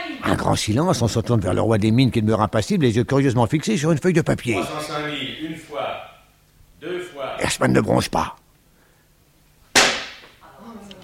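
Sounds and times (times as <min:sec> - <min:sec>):
speech: 0:00.2 - 0:06.1, 0:06.8 - 0:08.4
auctioneer's hammer strike: 0:09.7 - 0:10.3.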